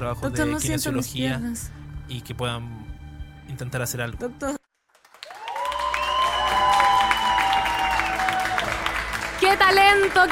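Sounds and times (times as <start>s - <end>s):
speech: 0.0s - 2.9s, 3.5s - 4.6s, 9.7s - 10.3s
audience applause: 5.0s - 10.3s.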